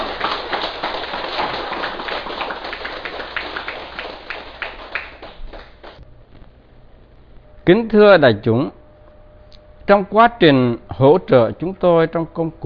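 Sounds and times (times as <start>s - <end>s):
crowd applauding: 0.0s - 6.0s
speech: 7.7s - 8.8s, 9.9s - 12.6s.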